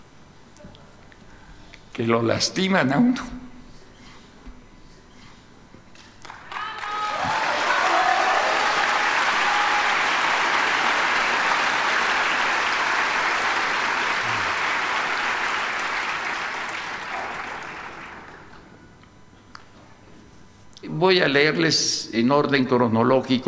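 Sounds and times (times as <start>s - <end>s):
speech: 2.0s - 3.4s, 21.3s - 23.4s
audience applause at a poetry reading: 6.2s - 18.7s.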